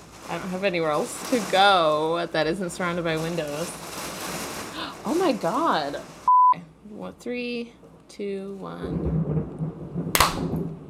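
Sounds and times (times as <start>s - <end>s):
speech: 0.3s - 4.0s, 5.0s - 9.2s
thunder clap during a storm: 8.8s - 10.8s.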